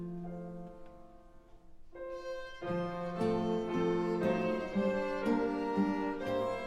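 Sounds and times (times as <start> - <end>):
children's orchestra playing: 2.1 - 6.6.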